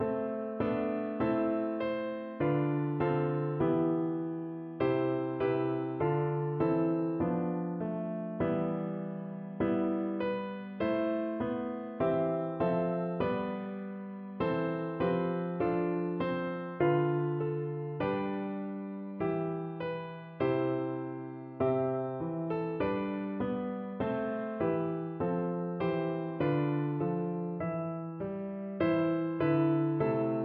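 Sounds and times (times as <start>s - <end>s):
piano: 0.0s - 30.4s.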